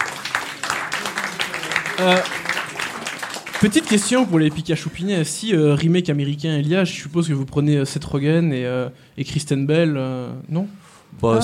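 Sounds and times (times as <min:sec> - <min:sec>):
applause from a small group: 0:00.0 - 0:05.0
speech: 0:02.0 - 0:02.4, 0:03.6 - 0:11.4.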